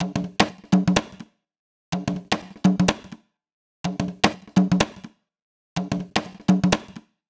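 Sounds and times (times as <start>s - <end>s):
conga loop: 0.0s - 1.2s, 2.0s - 3.2s, 3.9s - 5.1s, 5.8s - 7.0s.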